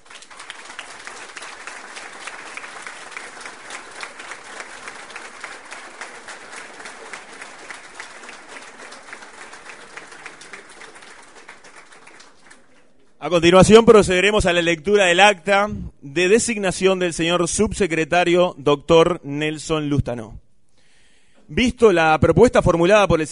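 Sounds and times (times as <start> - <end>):
audience applauding at a Minister of Labour appointment ceremony: 0.0 - 13.0
speech: 13.2 - 20.4, 21.5 - 23.3.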